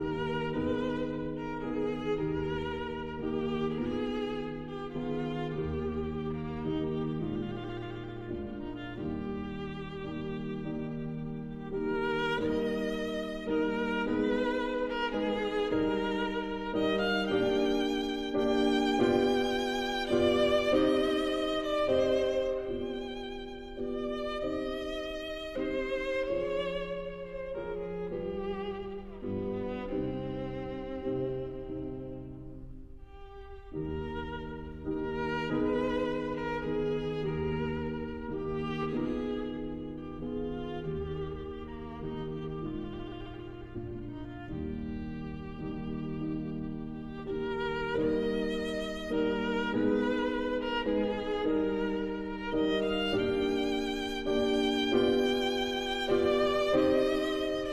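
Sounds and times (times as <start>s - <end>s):
violin and piano: 0.0s - 57.7s.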